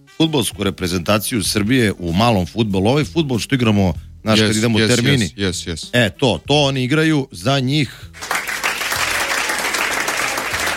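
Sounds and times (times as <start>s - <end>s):
speech: 0.1s - 8.3s
audience clapping: 8.2s - 10.7s.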